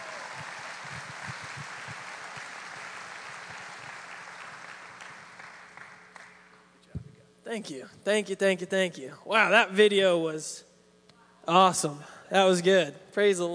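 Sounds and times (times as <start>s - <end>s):
crowd applauding: 0.0s - 6.6s
speech: 7.5s - 10.7s, 11.5s - 13.5s.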